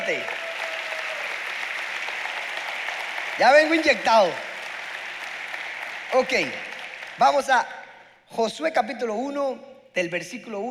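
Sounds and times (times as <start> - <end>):
audience applause: 0.0 - 7.8
speech: 3.4 - 4.5, 6.1 - 10.6.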